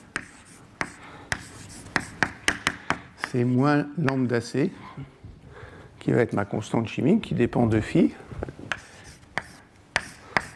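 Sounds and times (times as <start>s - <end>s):
writing an equation on a board: 0.0s - 3.6s, 8.7s - 10.5s
speech: 3.3s - 5.2s, 6.0s - 8.6s.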